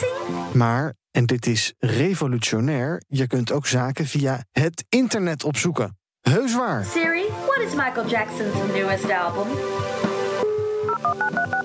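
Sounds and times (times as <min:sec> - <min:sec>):
speech: 0:00.0 - 0:10.0, 0:11.1 - 0:11.6
dial-up modem dialing tones: 0:10.4 - 0:11.6.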